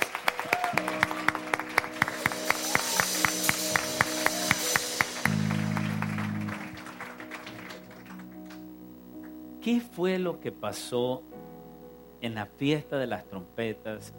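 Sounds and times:
audience applause: 0.0 - 8.7
speech: 9.7 - 11.3, 12.2 - 14.1.

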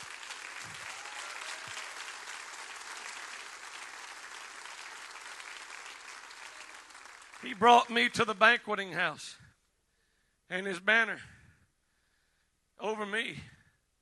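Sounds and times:
audience clapping: 0.0 - 8.3
speech: 7.4 - 9.4, 10.5 - 11.4, 12.8 - 13.6.

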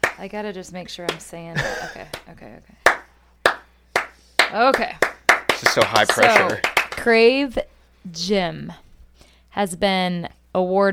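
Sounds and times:
speech: 0.2 - 3.0, 4.5 - 8.8, 9.5 - 10.9
slow clap: 2.1 - 7.2.

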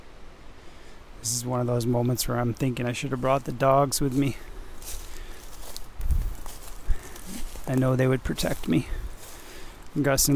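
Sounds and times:
speech: 1.2 - 5.0, 7.7 - 9.0, 10.0 - 10.3
footsteps walking toward a gravel road: 4.0 - 10.3.

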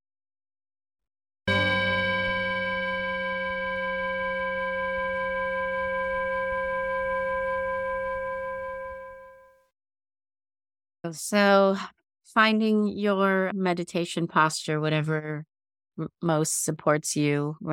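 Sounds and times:
meditation bell: 1.5 - 9.6
speech: 11.1 - 17.7.

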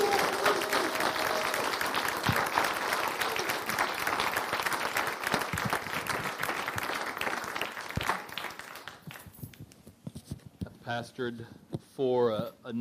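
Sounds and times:
audience standing and clapping: 0.0 - 9.6
speech: 11.0 - 12.8.

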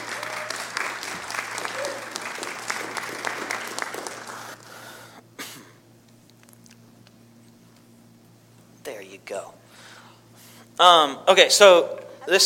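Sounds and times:
audience applause welcoming a guest speaker to the stage: 0.0 - 4.9
speech: 10.8 - 12.4.

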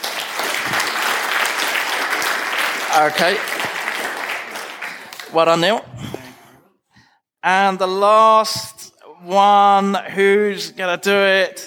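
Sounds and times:
applause: 0.0 - 5.8
speech: 3.0 - 3.6, 5.3 - 6.1, 7.4 - 11.6.

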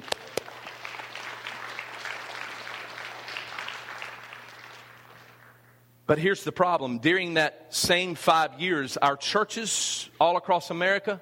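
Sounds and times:
audience applauding: 0.0 - 5.8
speech: 6.1 - 11.1.

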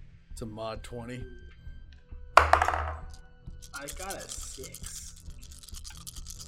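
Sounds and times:
speech: 0.4 - 1.5, 3.8 - 5.1
many dice rolling on a table: 2.4 - 6.4.

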